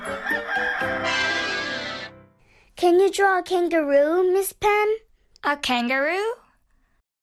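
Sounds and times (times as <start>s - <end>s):
chicken crowing: 0.0s - 2.1s
speech: 2.9s - 6.4s.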